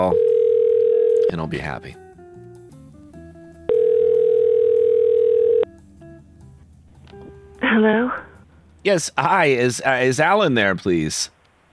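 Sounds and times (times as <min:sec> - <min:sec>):
telephone ring tone on an outgoing call: 0:00.0 - 0:01.4, 0:03.7 - 0:05.7
speech: 0:01.3 - 0:02.0, 0:07.8 - 0:11.4.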